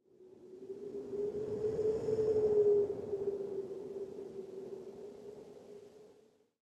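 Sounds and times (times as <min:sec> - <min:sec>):
wind: 0:00.0 - 0:06.5.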